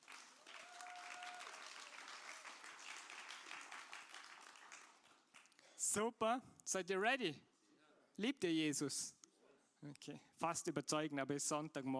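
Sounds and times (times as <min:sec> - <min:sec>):
audience applause: 0:00.0 - 0:05.5
speech: 0:05.9 - 0:07.5, 0:08.2 - 0:09.2, 0:09.8 - 0:11.9.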